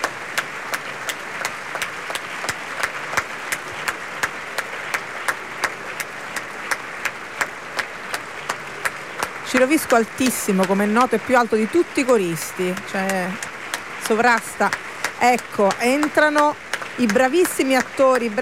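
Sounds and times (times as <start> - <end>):
warm audience applause in opera house: 0.0 - 18.4
speech: 9.5 - 13.5, 14.1 - 18.4.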